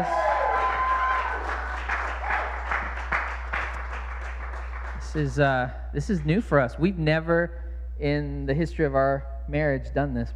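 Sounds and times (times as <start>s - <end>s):
church congregation applause welcoming the pastor's wife: 0.0s - 5.4s
low hum: 0.0s - 10.3s
speech: 5.2s - 10.3s.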